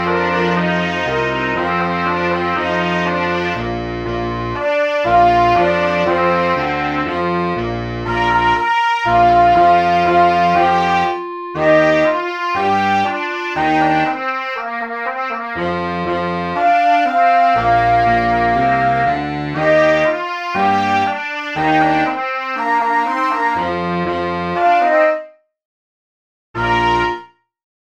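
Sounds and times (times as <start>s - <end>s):
pop song backing track without alto sax: 0.0s - 25.4s, 26.6s - 27.4s.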